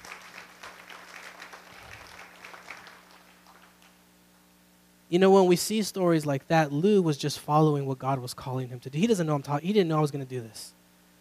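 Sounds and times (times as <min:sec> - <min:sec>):
audience clapping in a large room: 0:00.0 - 0:04.0
speech: 0:05.1 - 0:10.8.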